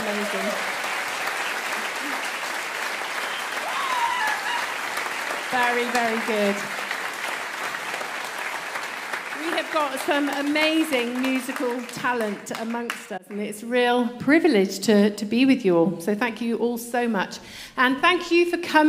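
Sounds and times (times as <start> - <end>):
audience applause: 0.0 - 13.1
speech: 5.6 - 6.8, 9.7 - 18.8.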